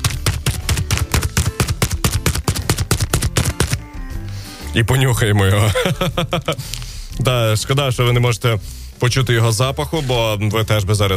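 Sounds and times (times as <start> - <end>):
hand patting a food product: 0.0 - 4.4
speech: 4.7 - 11.1
laughter: 5.4 - 6.7.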